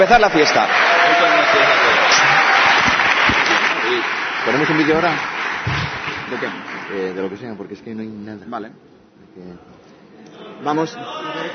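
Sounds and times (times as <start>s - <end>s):
speech: 0.0s - 0.9s, 4.4s - 9.8s, 10.6s - 11.5s
audience applause: 0.0s - 7.5s.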